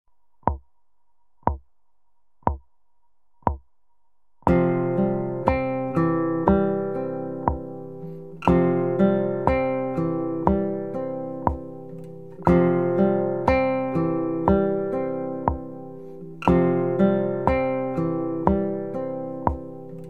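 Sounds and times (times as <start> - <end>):
string picking: 4.5 - 20.0.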